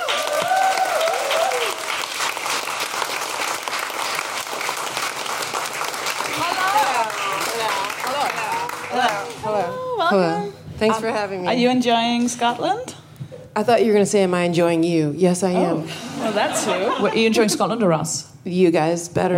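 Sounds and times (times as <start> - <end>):
audience applause: 0.0 - 9.7
speech: 10.1 - 12.9, 13.6 - 19.3
laughter: 15.8 - 17.8.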